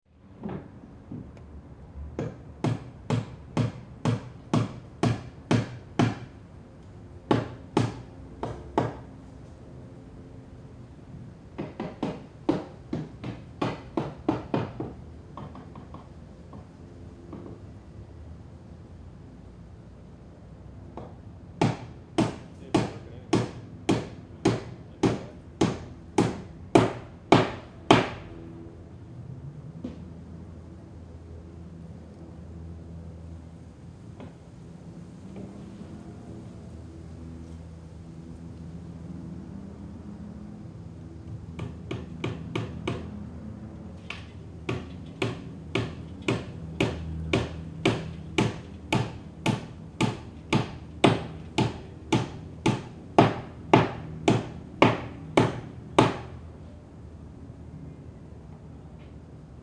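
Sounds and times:
sounds outside the window: 0.0s - 59.6s
hammer knocking indoors: 2.2s - 6.3s, 11.6s - 16.1s, 21.0s - 28.2s, 41.6s - 43.1s, 44.1s - 56.3s.

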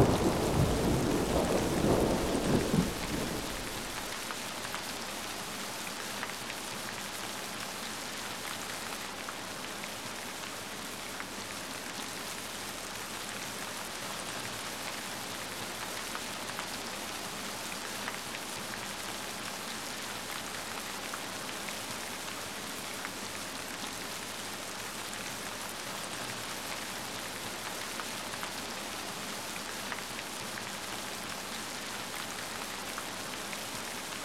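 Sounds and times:
thunder: 0.0s - 4.2s
rain in a thunderstorm: 0.0s - 34.2s.

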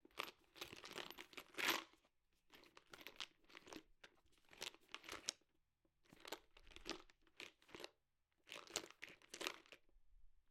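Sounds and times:
small container of belongings rustling and shaking: 0.1s - 5.3s, 6.1s - 7.9s, 8.5s - 9.8s.

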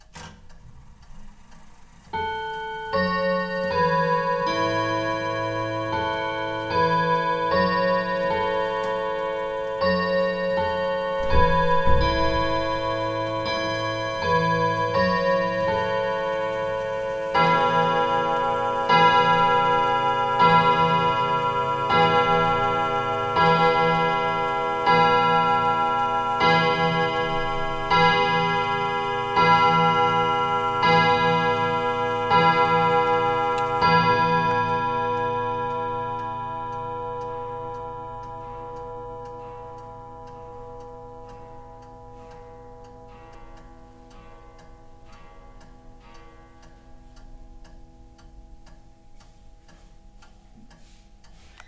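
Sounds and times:
pendulum clock striking: 0.0s - 51.6s.

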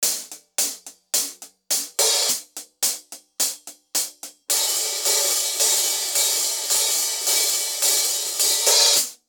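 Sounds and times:
drum melody: 0.0s - 9.2s
cymbals: 4.5s - 9.2s.

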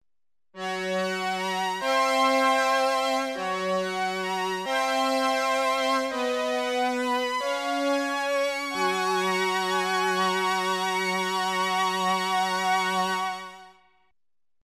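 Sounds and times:
synthesizer symphonic intro with fanfares: 0.6s - 13.7s.

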